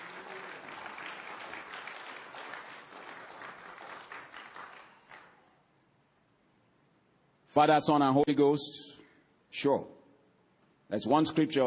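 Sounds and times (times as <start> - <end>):
hand clapping: 0.0 - 5.6
speech: 7.6 - 10.0, 10.9 - 11.6.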